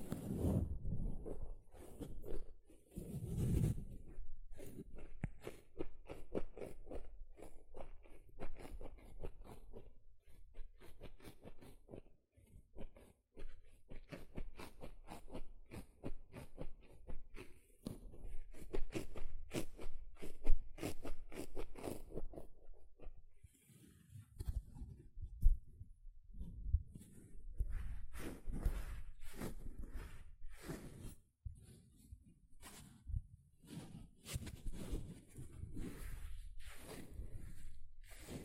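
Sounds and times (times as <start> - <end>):
sponge scratched squished and brushed: 0.0 - 25.0, 26.3 - 38.4.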